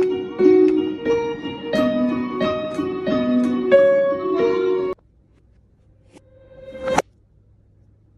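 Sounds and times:
piano song: 0.0 - 5.0.

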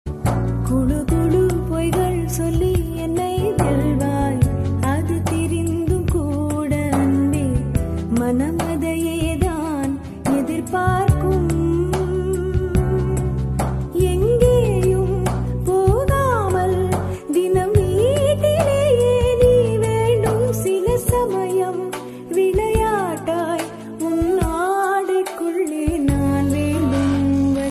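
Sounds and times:
Tamil love song: 0.1 - 27.6.

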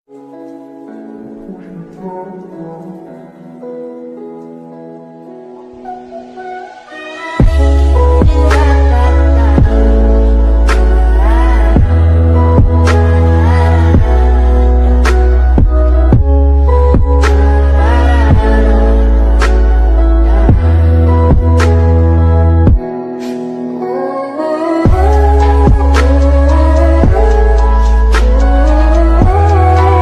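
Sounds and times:
sad ringtone background music: 0.2 - 30.0.

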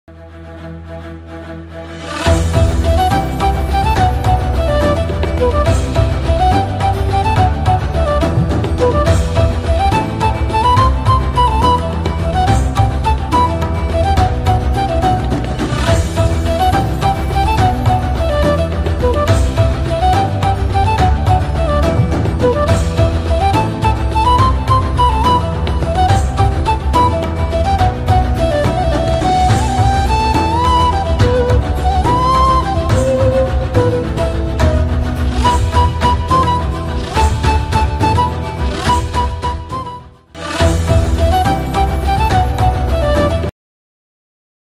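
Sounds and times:
flute ringtone: 2.2 - 43.5.

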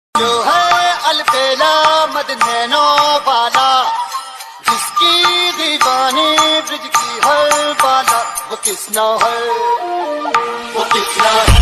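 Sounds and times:
bhakti ringtone: 0.2 - 11.5.

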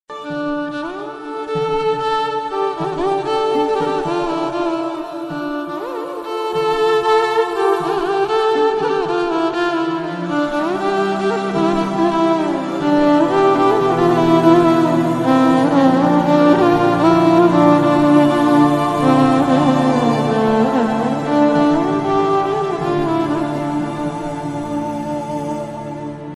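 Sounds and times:
violin: 0.0 - 26.3.

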